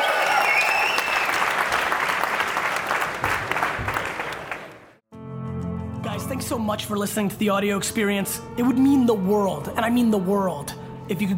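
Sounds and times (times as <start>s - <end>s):
audience applause in Helsinki: 0.0s - 5.0s
speech: 6.4s - 11.3s.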